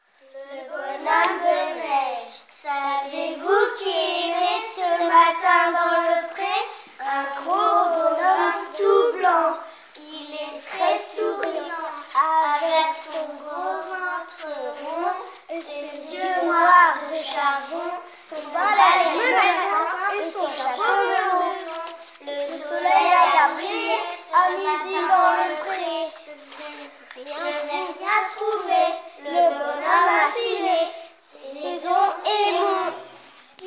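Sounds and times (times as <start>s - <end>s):
vocals: 0.2s - 33.6s.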